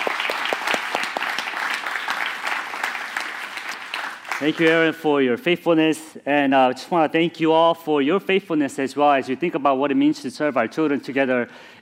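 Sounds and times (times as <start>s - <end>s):
applause: 0.0s - 5.0s
speech: 4.4s - 11.8s.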